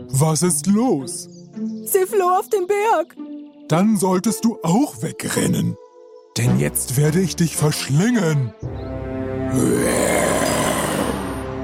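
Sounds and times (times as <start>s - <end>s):
speech: 0.1s - 5.8s, 6.4s - 8.8s, 9.5s - 10.3s
lion roaring: 9.5s - 11.5s.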